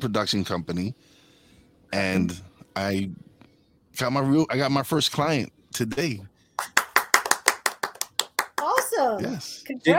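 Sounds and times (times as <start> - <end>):
speech: 0.0 - 1.2, 1.9 - 3.3, 4.0 - 6.7, 9.0 - 9.9
soundboard applause sound effect: 6.6 - 8.9.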